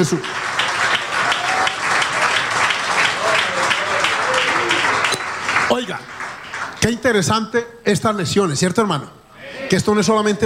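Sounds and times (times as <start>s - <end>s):
speech: 0.0s - 0.4s, 5.7s - 6.2s, 6.8s - 10.4s
applause: 0.0s - 7.1s.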